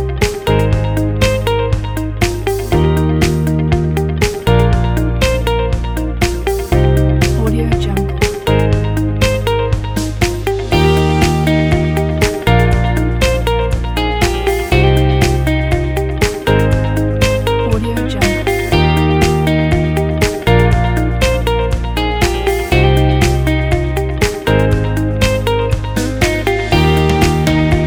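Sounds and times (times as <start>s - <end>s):
energetic upbeat corporate guitar music: 0.0s - 27.8s.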